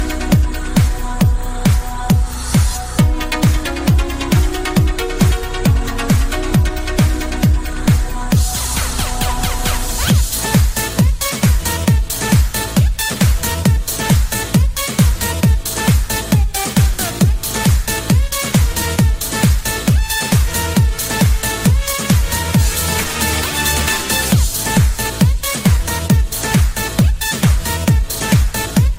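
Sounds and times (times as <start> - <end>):
dance remix ringtone: 0.0 - 28.9.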